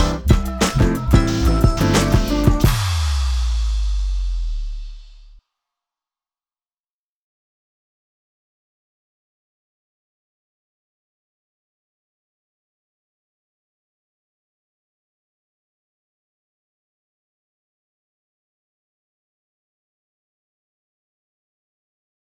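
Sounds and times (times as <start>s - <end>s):
instrumental music: 0.0s - 5.1s.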